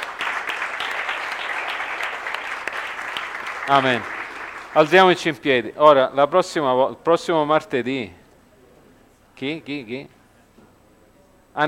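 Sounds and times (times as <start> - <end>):
audience applauding: 0.0 - 5.3
speech: 3.7 - 8.2, 9.4 - 10.2.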